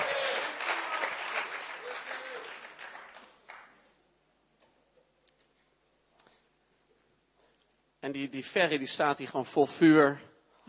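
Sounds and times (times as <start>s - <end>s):
crowd applauding for the band: 0.0s - 3.8s
speech: 8.0s - 10.6s.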